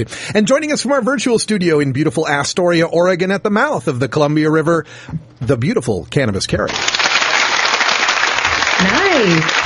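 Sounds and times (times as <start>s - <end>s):
speech: 0.0s - 7.2s, 8.8s - 9.6s
studio audience applause: 6.7s - 9.6s.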